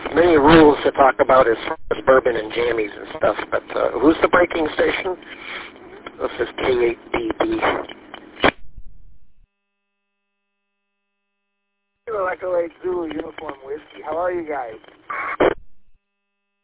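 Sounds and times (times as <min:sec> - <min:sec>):
person talking over filtered radio audio: 0:00.0 - 0:08.2, 0:12.1 - 0:14.8
speech: 0:00.2 - 0:07.9, 0:12.2 - 0:15.4
radio click: 0:06.0 - 0:08.6, 0:12.9 - 0:15.6.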